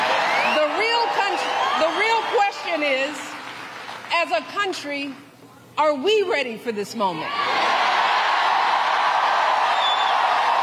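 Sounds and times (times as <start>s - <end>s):
rowdy crowd cheering in Kalamazoo: 0.0s - 4.0s, 7.3s - 10.6s
speech: 4.2s - 7.5s.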